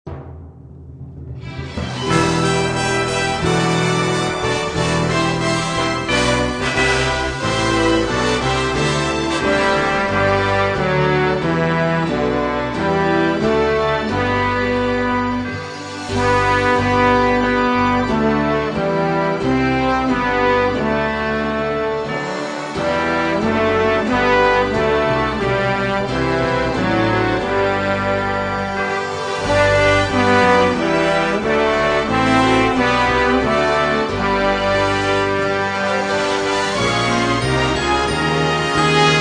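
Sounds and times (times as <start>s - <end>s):
instrumental hymns: 1.6s - 39.1s.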